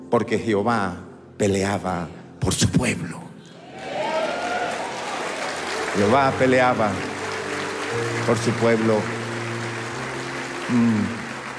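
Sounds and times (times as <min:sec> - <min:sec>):
speech: 0:00.1 - 0:03.2, 0:06.0 - 0:07.1, 0:07.9 - 0:09.2, 0:10.7 - 0:11.2
audience applause: 0:03.7 - 0:11.5.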